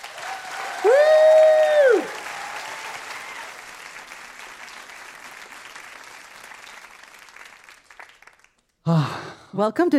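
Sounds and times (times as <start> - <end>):
loud sustained audience cheer: 0.0 - 4.2
audience applause welcoming a guest to the stage: 0.0 - 8.9.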